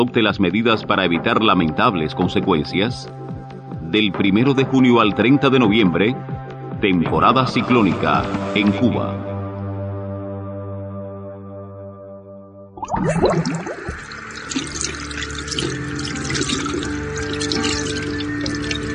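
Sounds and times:
speech: 0.0 - 3.3, 3.9 - 9.3, 12.8 - 14.0
running tap water for handwashing: 12.8 - 18.9.

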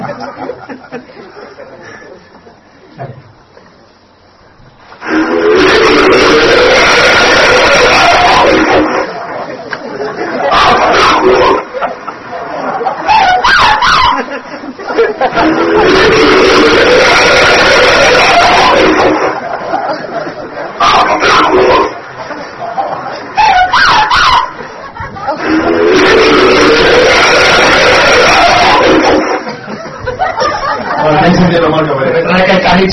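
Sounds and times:
laughter: 0.0 - 3.2, 7.8 - 16.2, 17.5 - 32.3
alleged Bigfoot vocalizations: 5.0 - 9.2, 10.4 - 11.7, 15.2 - 19.5, 20.8 - 22.0, 25.4 - 29.5.

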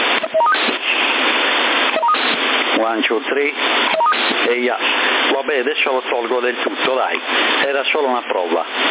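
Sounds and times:
loud CB radio hiss: 0.0 - 8.8
CB radio roger beep tones: 0.2 - 1.0, 1.9 - 2.4, 3.9 - 4.5
speech: 3.0 - 8.8.

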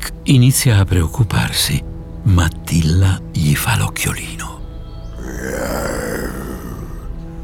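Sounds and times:
speech: 0.3 - 4.5
low rough creature roar: 5.2 - 7.1.

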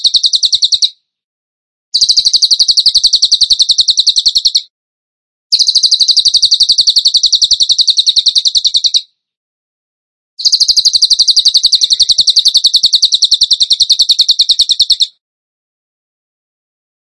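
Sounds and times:
bird rapid trill: 0.0 - 1.0, 2.0 - 4.7, 5.5 - 9.1, 10.4 - 15.2.

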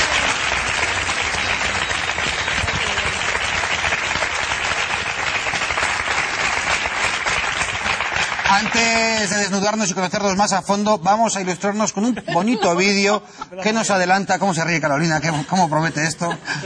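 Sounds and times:
audience applause: 0.0 - 9.8
speech: 8.6 - 16.6
laughter: 11.4 - 16.6.

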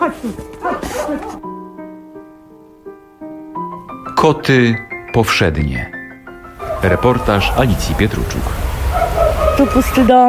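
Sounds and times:
speech: 0.0 - 1.5, 4.2 - 6.0, 6.8 - 8.7, 9.6 - 10.2
dog barking: 6.6 - 10.2.

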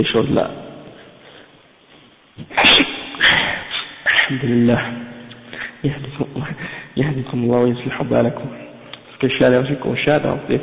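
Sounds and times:
speech: 0.0 - 0.6, 4.3 - 5.1, 5.8 - 10.6
person sneezing: 2.4 - 4.4.

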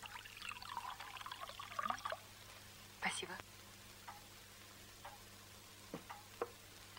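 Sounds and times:
wine being poured into a glass: 0.0 - 2.3
speech: 3.2 - 3.5.

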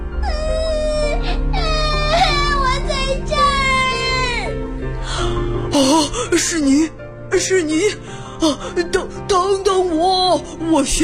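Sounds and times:
child crying: 0.2 - 6.9
speech: 6.3 - 11.0.

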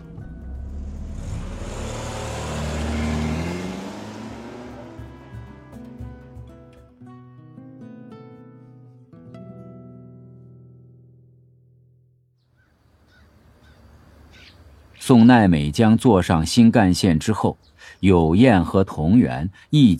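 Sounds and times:
car engine starting and driving off: 0.0 - 7.0
speech: 15.1 - 19.9.

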